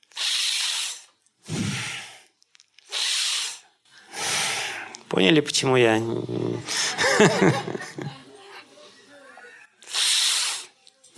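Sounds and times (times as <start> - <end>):
breathing exercise exhales through the nostrils: 0.0 - 5.0, 9.8 - 11.1
breathing exercise inhales hissed through clenched teeth: 0.0 - 5.1, 9.8 - 11.1
speech: 5.1 - 8.2
laughter: 6.6 - 8.6.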